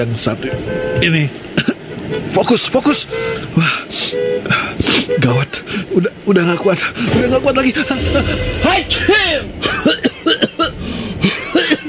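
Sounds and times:
speech: 0.0 - 10.1
coughing fit: 9.6 - 10.8.

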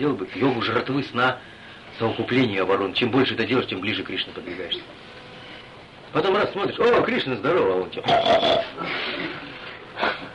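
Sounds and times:
speech: 0.0 - 5.2, 6.1 - 10.2
voice imitating a pig's grunt: 8.0 - 8.9.

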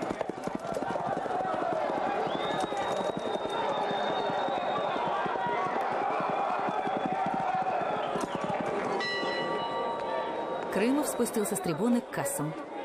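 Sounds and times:
horses galloping in a race: 0.0 - 9.0
crowd roar from packed stands: 0.0 - 10.8
speech: 11.2 - 12.7.

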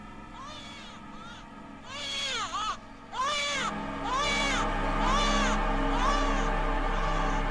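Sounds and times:
eerie shrill crying: 0.4 - 7.4.

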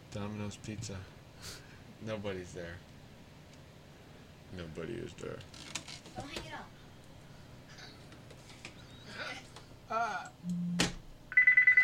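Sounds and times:
speech: 0.1 - 2.9, 4.5 - 6.8, 9.2 - 10.7
low hum: 10.4 - 11.3
phone's electronic ring: 10.6 - 11.8.

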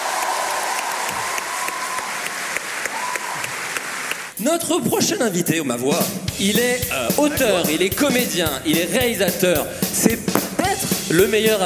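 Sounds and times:
audience clapping for a guest on a show: 0.0 - 4.4
speech: 4.4 - 10.4, 11.1 - 11.6.

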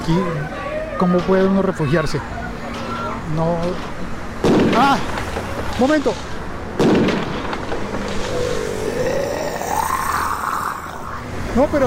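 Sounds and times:
speech: 0.0 - 2.4, 3.3 - 5.2, 5.8 - 6.3, 11.6 - 11.8
gunshot: 4.4 - 5.0, 6.8 - 7.8
rough rumbling wash of noise: 6.8 - 11.4.

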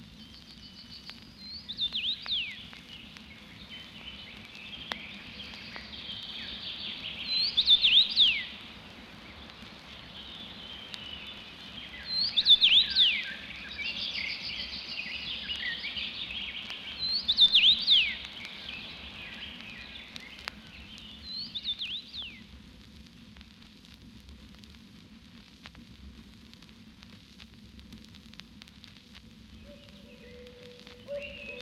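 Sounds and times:
chorus of birds chirping and twittering: 0.1 - 22.5, 29.6 - 31.6
common rosefinch song on a thin willow twig: 0.2 - 22.4, 29.6 - 31.6.

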